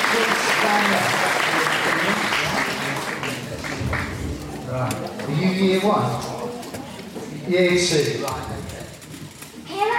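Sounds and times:
audience applause: 0:00.0 - 0:04.6
speech: 0:00.2 - 0:02.4, 0:04.7 - 0:06.4, 0:07.5 - 0:08.6.

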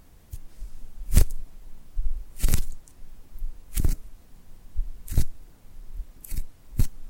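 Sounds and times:
sticky glued hands pulled apart and pressed together: 0:01.1 - 0:01.4, 0:02.4 - 0:03.0, 0:03.7 - 0:04.0, 0:06.2 - 0:07.0.

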